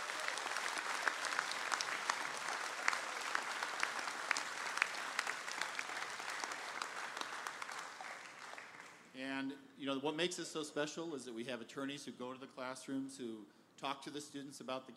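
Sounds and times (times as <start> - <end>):
audience applause for Kealakehe High School: 0.0 - 9.0
speech: 9.5 - 14.9.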